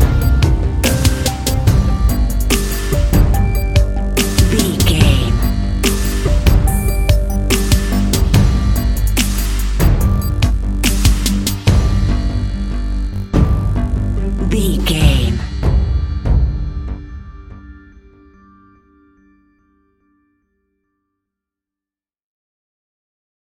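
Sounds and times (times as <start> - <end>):
dramatic decision countdown music: 0.0 - 18.4.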